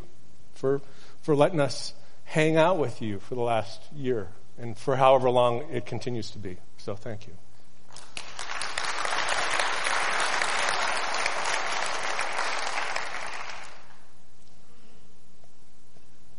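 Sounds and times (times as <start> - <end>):
speech: 0.6 - 7.4
crowd applause: 7.9 - 14.0.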